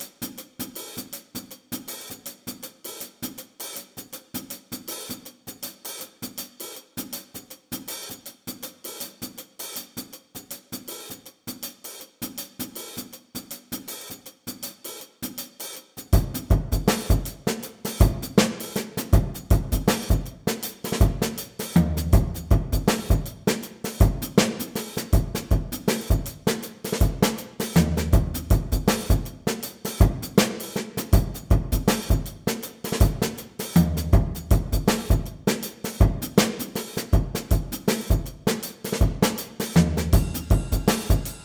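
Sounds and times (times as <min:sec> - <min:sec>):
instrumental music: 0:16.1 - 0:41.4.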